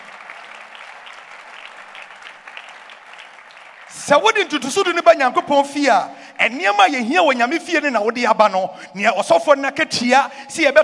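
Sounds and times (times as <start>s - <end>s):
audience clapping hands: 0.0s - 5.0s
speech: 4.0s - 10.8s.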